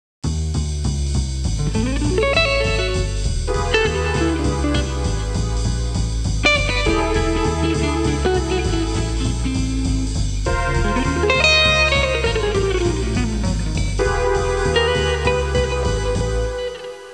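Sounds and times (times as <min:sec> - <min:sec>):
urban music: 0:00.3 - 0:17.1.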